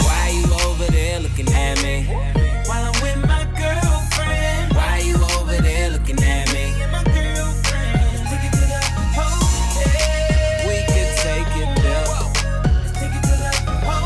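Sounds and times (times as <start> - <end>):
funk music: 0.0 - 14.0.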